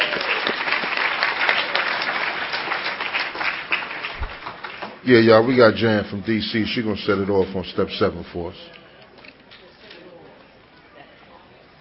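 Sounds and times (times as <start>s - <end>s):
round of applause: 0.0s - 5.0s
speech: 5.0s - 8.8s.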